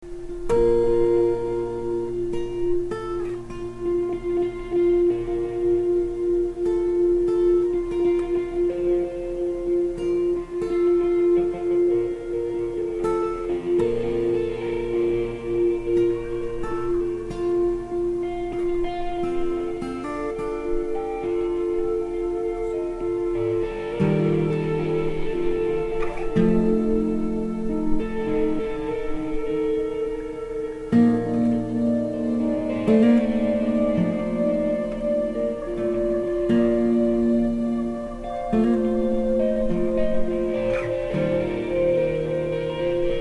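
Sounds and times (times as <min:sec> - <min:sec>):
piece for two guitars: 0:00.0 - 0:43.1.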